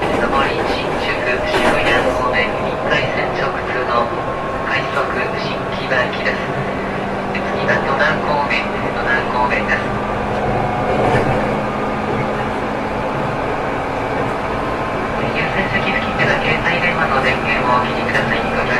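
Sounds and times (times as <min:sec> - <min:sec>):
Saikyo Kawagoe 205 train: 0:00.0 - 0:18.7.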